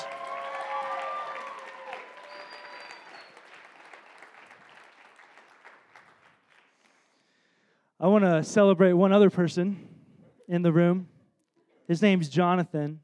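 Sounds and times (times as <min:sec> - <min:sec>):
audience applause: 0:00.0 - 0:07.1
speech: 0:08.0 - 0:09.9, 0:10.5 - 0:11.1, 0:11.9 - 0:13.0.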